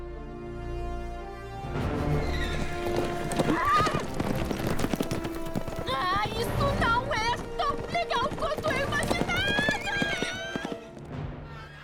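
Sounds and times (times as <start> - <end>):
horse hooves clip-clopping: 1.9 - 11.2.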